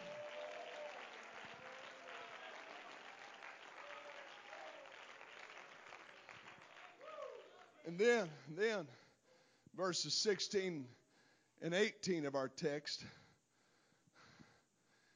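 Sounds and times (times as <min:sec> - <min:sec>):
audience clapping hands: 0:00.0 - 0:08.3
speech: 0:07.8 - 0:09.0, 0:09.8 - 0:11.0, 0:11.6 - 0:13.2.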